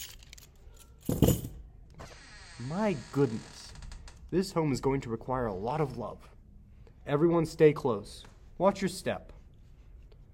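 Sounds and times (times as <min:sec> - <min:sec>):
keys jangling at a run-down home: 0:00.0 - 0:01.6
speech: 0:01.1 - 0:01.5, 0:02.6 - 0:03.6, 0:04.3 - 0:06.3, 0:07.1 - 0:09.4.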